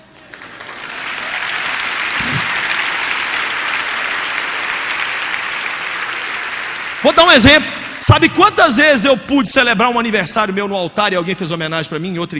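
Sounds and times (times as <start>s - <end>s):
audience applause: 0.0s - 8.4s
speech: 7.1s - 12.3s.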